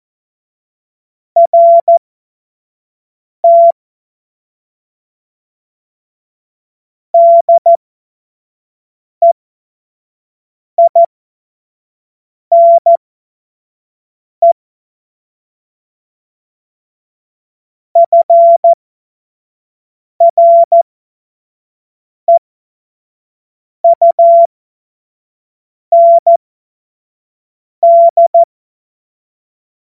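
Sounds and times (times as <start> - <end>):
Morse code course tones: 1.4 - 2.0, 3.4 - 3.7, 7.2 - 7.8, 10.8 - 11.1, 12.5 - 13.0, 18.0 - 18.8, 20.2 - 20.8, 23.9 - 24.5, 26.0 - 26.4, 27.8 - 28.5.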